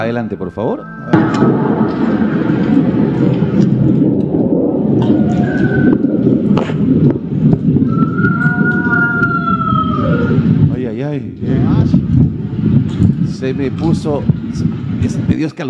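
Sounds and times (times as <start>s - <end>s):
speech: 0.0s - 7.1s, 13.4s - 15.6s
heavy rumbling noise: 0.0s - 15.6s
eerie distant wailing scream of La Llorona: 1.1s - 6.6s, 7.8s - 10.6s.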